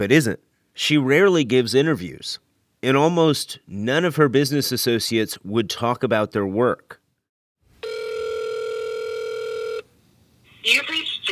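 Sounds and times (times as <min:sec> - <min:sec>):
speech: 0:00.0 - 0:07.0, 0:10.6 - 0:11.0
telephone ringing on outgoing call: 0:07.8 - 0:09.9.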